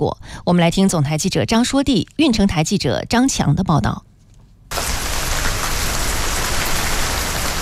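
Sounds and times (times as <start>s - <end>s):
speech: 0.0s - 4.1s
rooftop high-pressure spray cooling system raining water: 4.7s - 7.6s.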